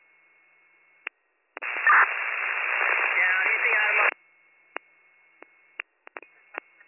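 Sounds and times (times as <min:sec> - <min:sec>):
garbled band-limited radio transmission: 0:01.6 - 0:04.2
receiver clicks and squelch pops: 0:04.7 - 0:06.7.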